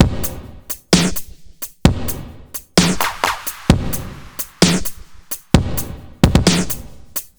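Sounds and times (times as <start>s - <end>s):
130 beat leisure music: 0.0s - 7.3s.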